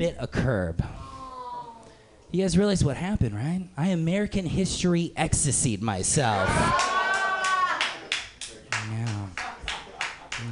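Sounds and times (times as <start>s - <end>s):
speech: 0.0s - 1.0s, 2.3s - 6.9s
audience applause: 6.4s - 10.5s.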